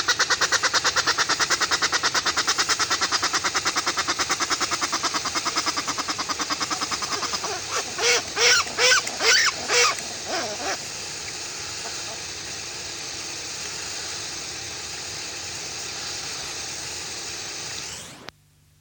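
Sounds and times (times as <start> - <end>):
Westland petrel song: 0.2 - 13.7.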